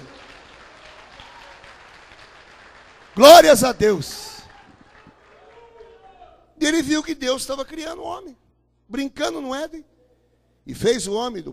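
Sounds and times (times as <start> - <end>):
audience applauding: 0.0 - 6.2
speech: 3.2 - 4.3, 6.7 - 9.9, 10.6 - 11.5.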